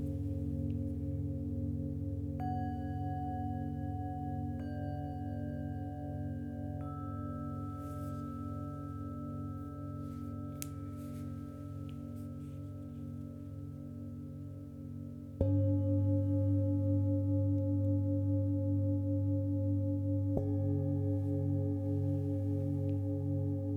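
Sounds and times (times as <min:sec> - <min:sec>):
singing bowls: 0:00.0 - 0:23.7.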